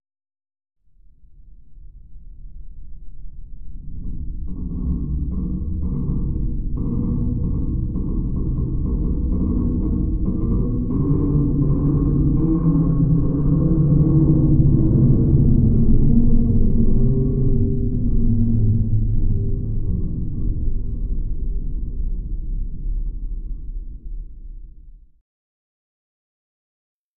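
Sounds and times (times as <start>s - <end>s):
low underwater metal groans: 3.9s - 23.4s.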